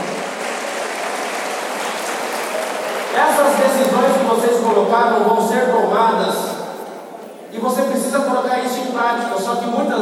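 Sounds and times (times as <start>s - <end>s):
crowd applause: 0.0s - 4.0s
speech: 3.6s - 6.5s, 7.5s - 9.9s.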